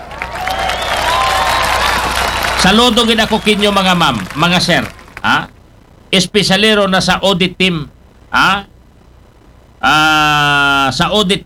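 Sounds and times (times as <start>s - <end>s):
audience applause for a Commission on Audit team: 0.0s - 5.4s
faint tonal whine: 0.0s - 11.4s
speech: 2.6s - 8.7s, 9.8s - 11.4s.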